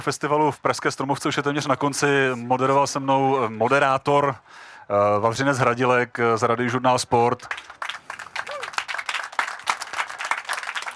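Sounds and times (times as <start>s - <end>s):
speech: 0.0s - 7.7s
audience applause: 7.5s - 10.9s.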